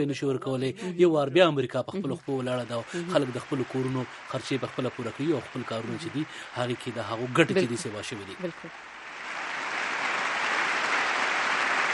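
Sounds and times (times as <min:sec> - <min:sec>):
speech: 0:00.0 - 0:08.9
crowd clapping for the president: 0:02.0 - 0:11.9.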